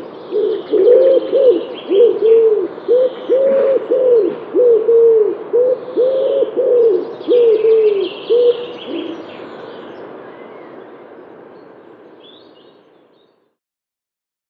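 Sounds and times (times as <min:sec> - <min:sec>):
common wood pigeon cooing: 0:00.3 - 0:09.3.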